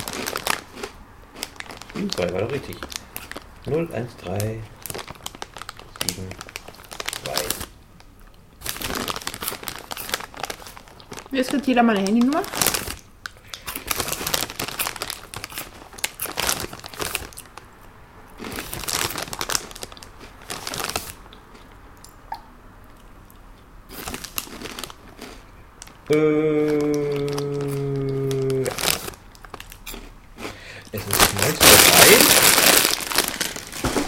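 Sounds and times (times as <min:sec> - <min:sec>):
bag of crisps crinkling and crumpling: 0:00.0 - 0:03.4, 0:04.0 - 0:07.7, 0:08.6 - 0:17.6, 0:18.4 - 0:21.2, 0:23.9 - 0:25.3, 0:26.7 - 0:30.0, 0:31.0 - 0:34.0
speech: 0:02.0 - 0:04.8, 0:06.0 - 0:06.4, 0:11.3 - 0:12.7.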